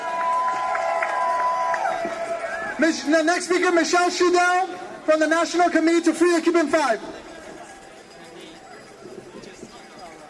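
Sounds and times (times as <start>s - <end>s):
crowd cheering for a speaker at a political gathering: 0.0s - 4.0s
speech: 2.8s - 7.2s.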